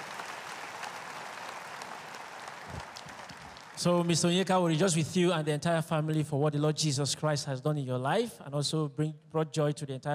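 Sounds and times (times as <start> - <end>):
church audience clapping: 0.0 - 4.6
speech: 3.8 - 10.1.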